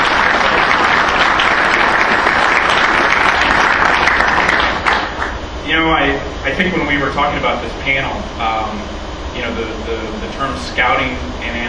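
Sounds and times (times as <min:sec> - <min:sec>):
crowd applause: 0:00.0 - 0:05.4
speech: 0:06.5 - 0:11.6.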